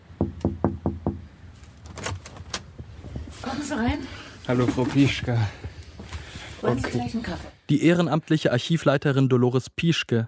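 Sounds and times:
firm knocking on a door: 0.2s - 1.3s
faint rustling and shuffling movement: 1.4s - 7.6s
speech: 3.4s - 5.6s, 6.6s - 10.2s.

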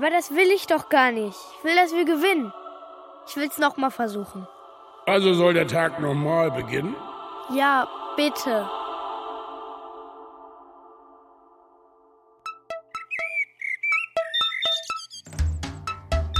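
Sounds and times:
speech: 0.0s - 2.6s, 3.3s - 8.8s
electronic alarm clock beeping: 12.4s - 16.3s.

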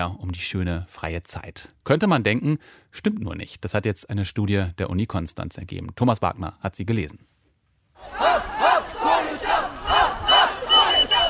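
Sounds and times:
speech: 0.0s - 7.3s
crowd of schoolchildren shouting in protest: 8.0s - 11.2s.

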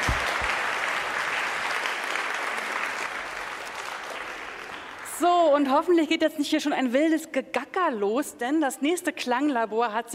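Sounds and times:
audience applause: 0.0s - 5.1s
speech: 5.2s - 10.1s.

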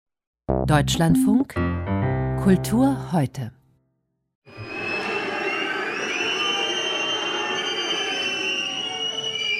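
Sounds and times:
speech: 0.5s - 3.6s
audience whistling and booing: 4.5s - 9.5s.

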